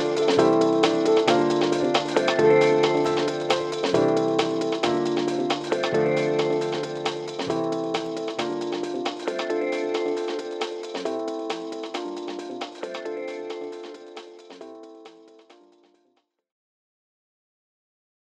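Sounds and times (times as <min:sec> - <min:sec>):
jazz music: 0:00.0 - 0:14.6.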